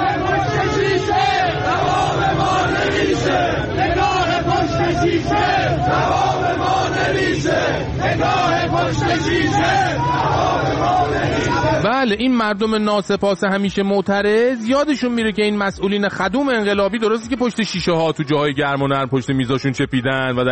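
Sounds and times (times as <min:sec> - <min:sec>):
protest crowd chanting slogans: 0:00.0 - 0:11.9
speech: 0:07.8 - 0:20.5.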